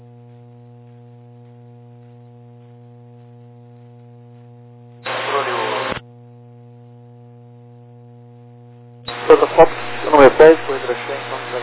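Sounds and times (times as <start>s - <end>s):
steady low electrical hum: 0.0s - 11.6s
radio carrier burst of static without voice: 5.0s - 6.0s, 9.1s - 11.6s
speech: 10.4s - 11.6s.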